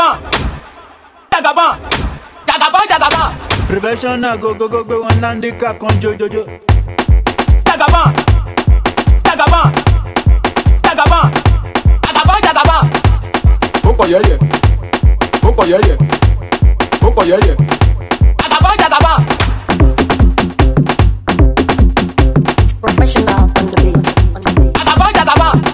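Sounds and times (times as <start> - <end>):
professional music beat: 0.2 - 1.0, 1.8 - 25.7
laughter: 12.0 - 13.0, 18.4 - 19.4, 24.8 - 25.7.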